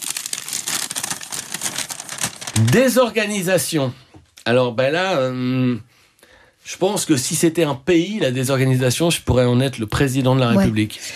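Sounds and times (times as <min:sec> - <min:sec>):
slip of paper being unfolded: 0:00.0 - 0:03.1
speech: 0:02.6 - 0:05.9, 0:06.6 - 0:11.1.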